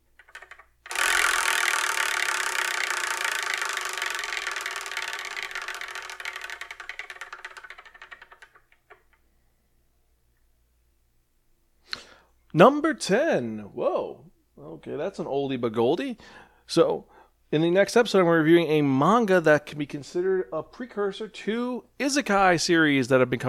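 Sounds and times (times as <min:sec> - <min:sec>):
selection wheel spinning: 0:00.0 - 0:09.2
speech: 0:12.5 - 0:23.4.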